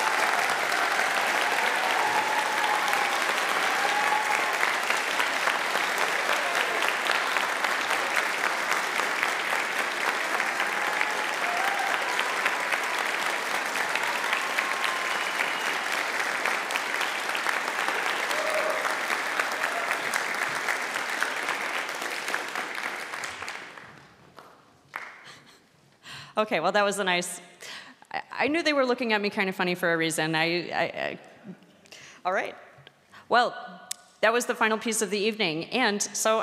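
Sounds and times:
concert audience applause: 0.0 - 25.6
speech: 26.4 - 27.5, 28.4 - 31.6, 32.2 - 32.6, 33.3 - 33.6, 34.2 - 36.4.

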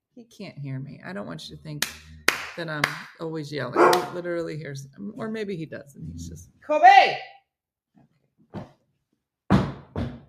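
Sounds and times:
speech: 0.2 - 7.3
heavy stomping on a floor: 9.5 - 10.2.

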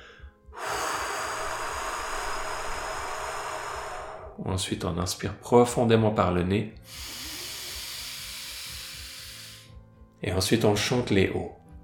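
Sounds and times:
long steady exhale through the mouth in a breathing exercise: 0.0 - 4.4, 6.8 - 9.8
speech: 4.4 - 7.2, 10.2 - 11.6.

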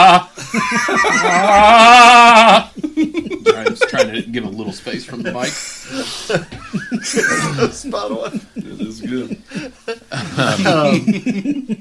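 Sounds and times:
laughter: 0.0 - 11.7
speech: 0.6 - 2.1, 4.3 - 6.4, 7.0 - 11.7
man imitating an anguished scream: 1.0 - 2.7.

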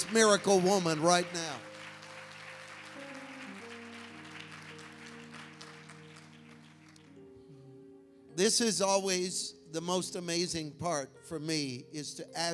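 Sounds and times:
speech: 0.0 - 1.7, 8.4 - 12.5
crowd applause: 0.0 - 7.2
sustained organ-like chords: 0.0 - 11.3.

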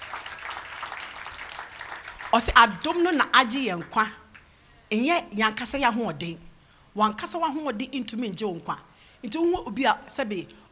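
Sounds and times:
audience clapping hands: 0.0 - 4.5
speech: 2.3 - 4.2, 4.9 - 10.6.

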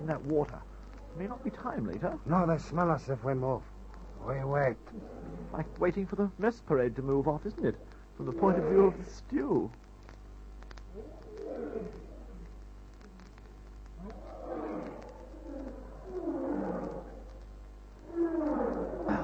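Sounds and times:
speech: 0.0 - 9.8
lions roaring: 3.3 - 5.8, 7.4 - 9.1, 10.9 - 12.5, 14.0 - 17.3, 18.0 - 19.2.

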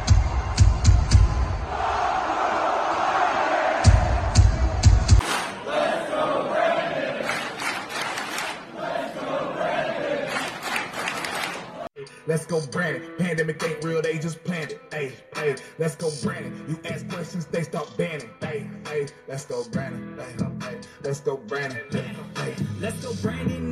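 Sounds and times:
crowd chanting: 0.0 - 11.9
speech: 12.3 - 22.0.

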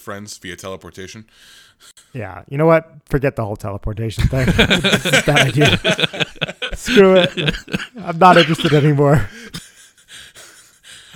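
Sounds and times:
speech: 0.0 - 9.4
laughter: 4.2 - 10.9
person coughing: 6.8 - 9.8.

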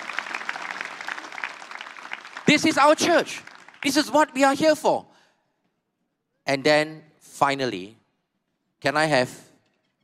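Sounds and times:
audience applause: 0.0 - 4.2
speech: 2.5 - 5.1, 6.5 - 8.0, 8.8 - 9.4.

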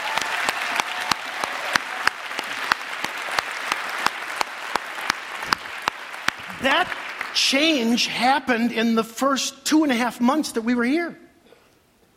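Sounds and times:
audience applause: 0.0 - 7.9
speech: 6.6 - 11.2.

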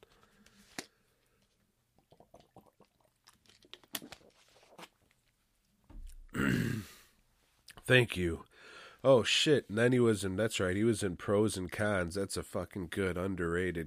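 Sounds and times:
person drinking water: 1.9 - 5.2
speech: 7.9 - 13.8.

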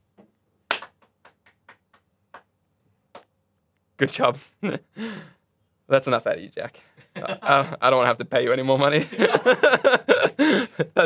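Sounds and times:
sympathy clapping: 0.7 - 2.5
speech: 4.0 - 11.0
laughter: 7.0 - 7.8, 9.0 - 11.0.

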